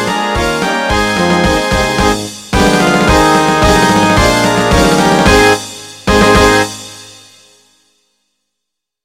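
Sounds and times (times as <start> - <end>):
happy marching band playing: 0.1 - 6.8.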